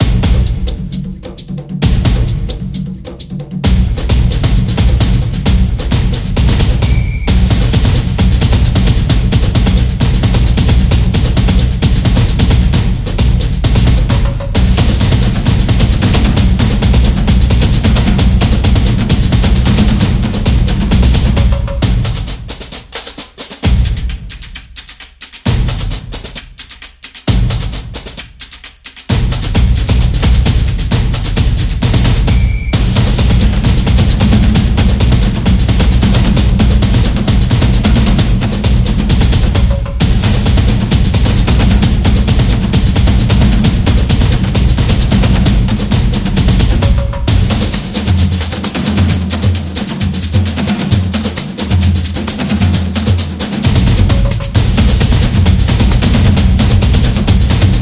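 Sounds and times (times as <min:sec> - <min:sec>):
dynamic samba rhythm: 0:00.0 - 0:57.8.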